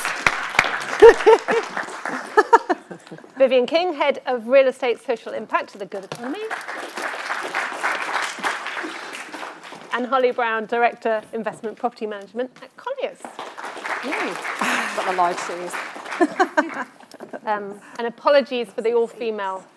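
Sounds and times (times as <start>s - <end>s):
audience applause: 0.0s - 2.8s, 6.3s - 10.0s, 13.4s - 17.0s
laughter: 0.9s - 3.4s, 14.6s - 15.4s, 16.0s - 17.0s
speech: 1.0s - 7.5s, 10.0s - 13.0s, 14.0s - 19.7s.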